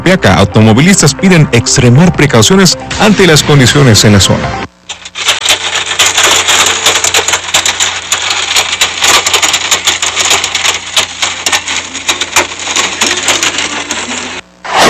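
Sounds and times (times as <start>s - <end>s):
speech: 0.1s - 5.0s
heavy hail with rain: 4.9s - 14.4s.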